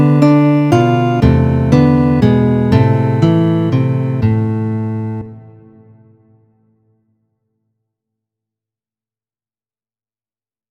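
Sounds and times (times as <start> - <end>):
guitar duet: 0.0 - 6.0.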